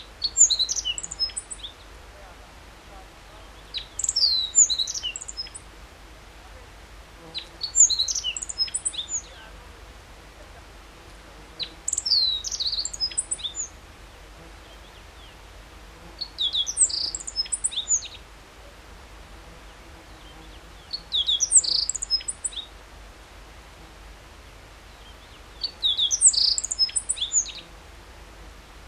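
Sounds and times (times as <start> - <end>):
meadow bunting singing: 0.2 - 1.8, 3.6 - 5.6, 7.4 - 9.4, 11.6 - 13.7, 16.2 - 18.2, 20.2 - 22.7, 25.0 - 27.7.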